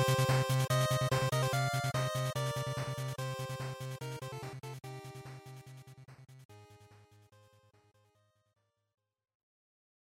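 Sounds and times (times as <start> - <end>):
Game Boy action stage background music: 0.0 - 6.0.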